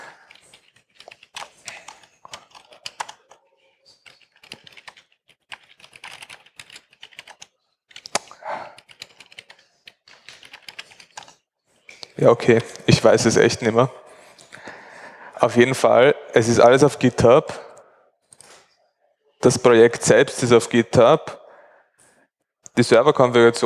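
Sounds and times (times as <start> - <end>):
password being typed on a computer keyboard: 0.0 - 11.4
speech: 12.2 - 14.0, 15.4 - 17.6, 19.4 - 21.4, 22.8 - 23.6.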